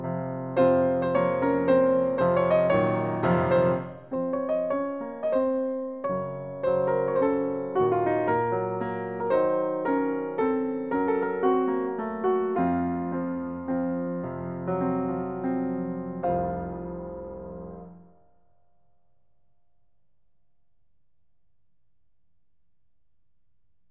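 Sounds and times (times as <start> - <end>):
Armenian song on piano: 0.0 - 18.7.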